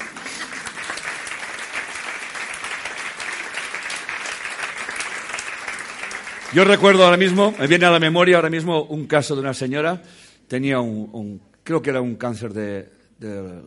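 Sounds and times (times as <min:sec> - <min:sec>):
audience applause: 0:00.0 - 0:08.2
speech: 0:06.5 - 0:13.6.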